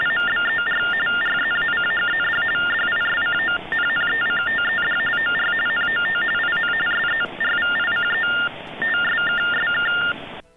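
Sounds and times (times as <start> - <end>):
telephone-line TTY tones: 0.0 - 10.4.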